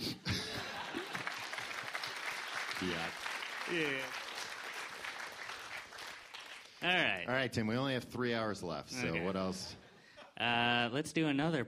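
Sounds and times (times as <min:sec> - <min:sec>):
laughter: 0:00.1 - 0:01.7
audience applause: 0:00.5 - 0:06.8
speech: 0:02.8 - 0:04.2, 0:06.8 - 0:09.8, 0:10.4 - 0:11.6.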